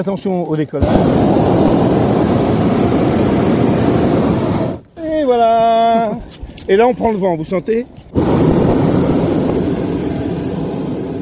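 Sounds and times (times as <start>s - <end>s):
speech: 0.0s - 2.2s, 5.3s - 8.5s
hot air balloon burner firing: 0.8s - 4.9s, 8.1s - 11.2s.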